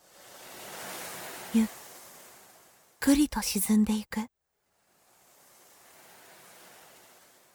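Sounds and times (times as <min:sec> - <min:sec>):
ocean waves: 0:00.0 - 0:03.0, 0:05.1 - 0:07.5
speech: 0:01.5 - 0:01.8, 0:03.0 - 0:04.3.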